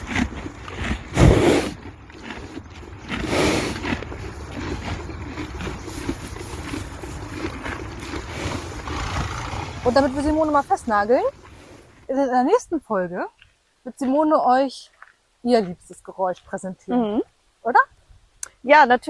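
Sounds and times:
horse eating with crunchy chewing and grinding: 0:00.0 - 0:12.1
speech: 0:09.9 - 0:11.4, 0:12.1 - 0:17.9, 0:18.6 - 0:19.0.

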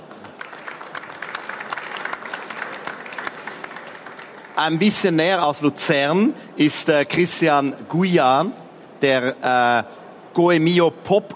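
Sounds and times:
audience applause: 0:00.0 - 0:05.0
speech: 0:04.6 - 0:11.3.

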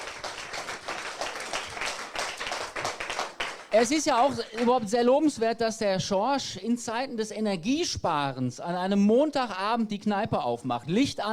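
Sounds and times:
audience applause: 0:00.0 - 0:04.8
speech: 0:03.7 - 0:11.3.

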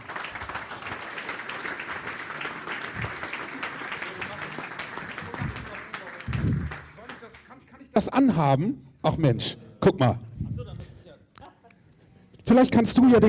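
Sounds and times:
audience applause at an event with live musicians: 0:00.0 - 0:07.6
speech: 0:08.0 - 0:10.2, 0:12.5 - 0:13.2.

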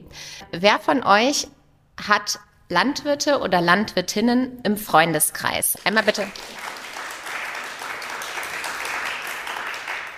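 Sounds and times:
speech: 0:00.5 - 0:06.6
hesitant audience clapping: 0:05.7 - 0:10.1.

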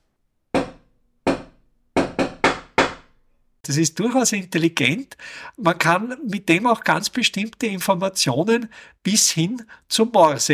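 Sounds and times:
door knocker knocking signal: 0:00.6 - 0:03.1
speech: 0:03.7 - 0:10.5.

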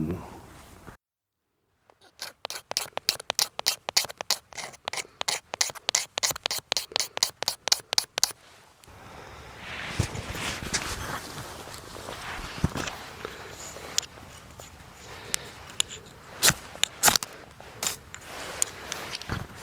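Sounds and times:
knife scraping shavings from a resinous fatwood stick: 0:01.9 - 0:08.4, 0:10.4 - 0:19.6.

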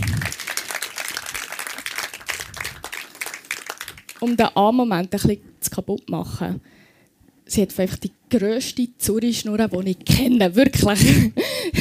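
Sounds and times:
applause: 0:00.0 - 0:04.5
speech: 0:04.2 - 0:06.8, 0:07.5 - 0:11.7.

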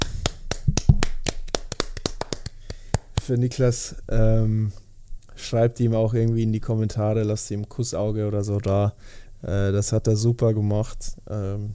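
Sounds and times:
hand clapping: 0:00.0 - 0:03.4
speech: 0:03.3 - 0:04.8, 0:05.4 - 0:11.7.

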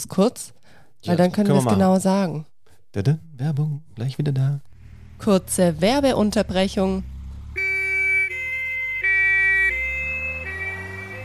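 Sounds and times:
speech: 0:00.0 - 0:07.1
low engine rumble: 0:04.6 - 0:07.7
loud two-tone ambulance siren: 0:07.3 - 0:11.2.

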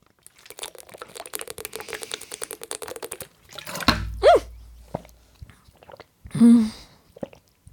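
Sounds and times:
bottle knocking against microphone: 0:03.8 - 0:05.1.

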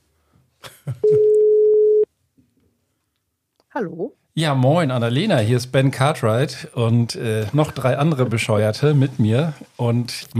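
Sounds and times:
telephone dial tone: 0:01.2 - 0:02.0
speech: 0:03.8 - 0:10.3.

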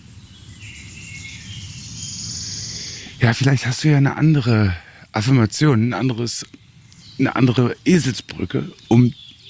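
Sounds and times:
bird singing trilling song with repeated first phrase: 0:00.0 - 0:09.4
speech: 0:03.2 - 0:06.6, 0:07.2 - 0:09.2.

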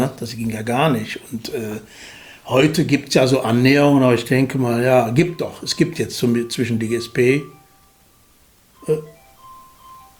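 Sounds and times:
speech: 0:00.0 - 0:07.6, 0:08.8 - 0:09.1
mobile phone ringing in jacket pocket: 0:04.7 - 0:10.1.

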